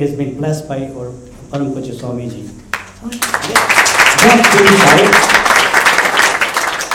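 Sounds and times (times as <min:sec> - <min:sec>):
speech: 0:00.0 - 0:05.6
audience clapping: 0:02.7 - 0:06.9.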